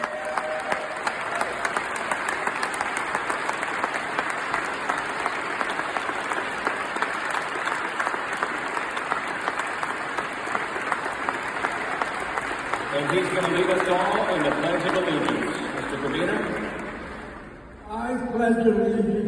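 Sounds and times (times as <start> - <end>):
faint cheers and crowd noise: 0.0 - 2.1
standing ovation applause: 0.0 - 17.7
speech: 13.4 - 15.4, 18.5 - 19.1.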